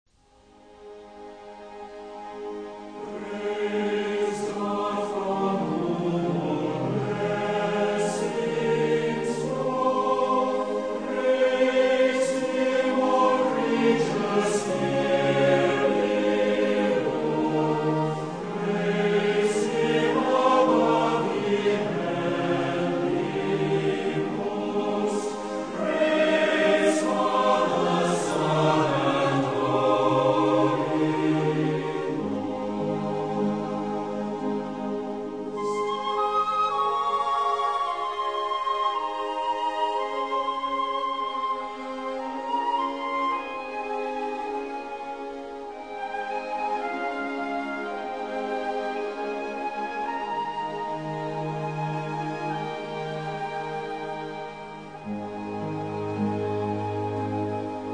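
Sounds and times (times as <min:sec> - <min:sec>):
orchestra: 0:00.2 - 0:57.9
choir: 0:00.7 - 0:57.9.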